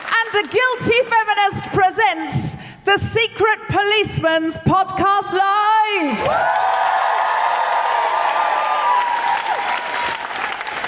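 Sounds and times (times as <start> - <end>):
speech: 0.4 - 7.0
live audience cheering: 6.2 - 10.8.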